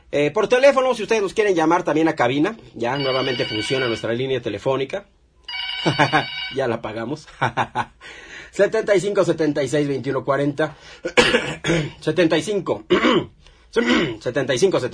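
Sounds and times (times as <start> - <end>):
speech: 0.1 - 5.2, 5.8 - 14.9
short cough from a lingering flu: 11.0 - 12.0, 12.9 - 14.2
rough throat clearing from a lingering flu: 11.1 - 12.0, 12.9 - 14.2.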